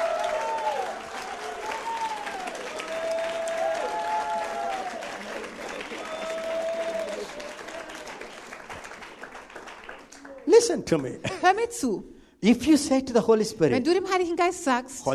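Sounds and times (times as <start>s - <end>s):
audience clapping hands: 0.0s - 11.3s
speech: 10.6s - 15.1s.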